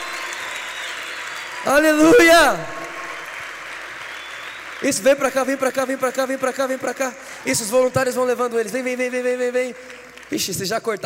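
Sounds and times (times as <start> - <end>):
audience applause: 0.0 - 11.0
speech: 1.6 - 2.8, 4.8 - 11.0.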